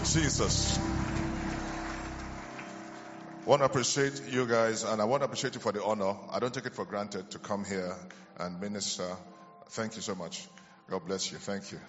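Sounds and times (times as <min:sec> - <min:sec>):
crowd applauding: 0:00.0 - 0:03.9
speech: 0:00.1 - 0:01.3, 0:03.4 - 0:11.8.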